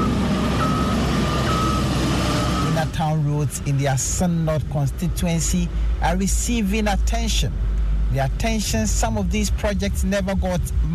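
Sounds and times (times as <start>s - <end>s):
high electronic reversing beep: 0.0s - 2.9s
earth-moving heavy machinery engine drone: 0.0s - 10.9s
speech: 3.0s - 10.9s.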